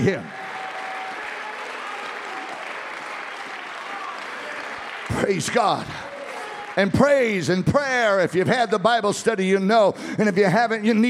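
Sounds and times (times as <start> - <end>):
speech: 0.0 - 0.4, 5.1 - 6.1, 6.8 - 11.0
audience clapping hands: 0.0 - 8.4.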